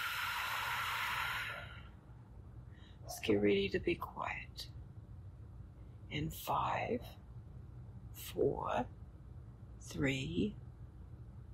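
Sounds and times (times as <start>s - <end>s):
deep breath blown out: 0.0s - 2.0s
speech: 3.2s - 4.8s, 6.1s - 7.2s, 8.3s - 9.0s, 9.9s - 10.6s.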